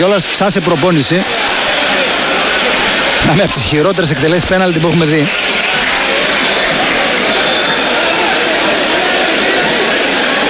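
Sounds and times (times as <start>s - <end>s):
speech: 0.0s - 1.8s, 3.2s - 5.5s
stadium crowd applause: 0.0s - 10.4s.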